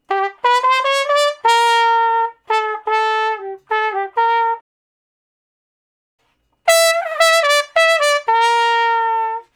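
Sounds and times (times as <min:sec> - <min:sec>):
trumpet playing slow blues in G: 0:00.0 - 0:04.6, 0:06.7 - 0:09.5.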